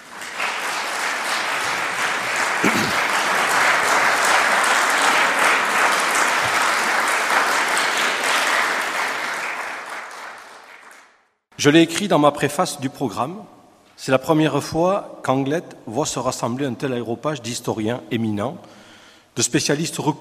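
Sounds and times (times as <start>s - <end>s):
audience applause: 0.0s - 11.2s
speech: 11.6s - 18.8s, 19.4s - 20.2s.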